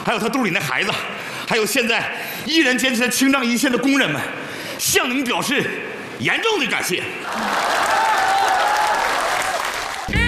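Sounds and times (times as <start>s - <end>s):
speech: 0.0s - 7.8s
audience applause: 7.2s - 10.1s.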